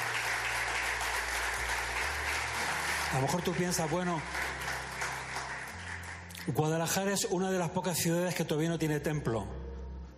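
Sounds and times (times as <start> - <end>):
audience applause: 0.0 - 6.4
speech: 3.1 - 4.6, 6.4 - 9.6.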